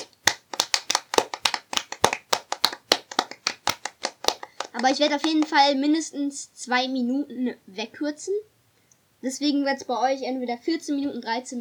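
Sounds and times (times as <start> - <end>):
hand clapping: 0.0 - 5.6
speech: 4.8 - 8.5, 9.2 - 11.5.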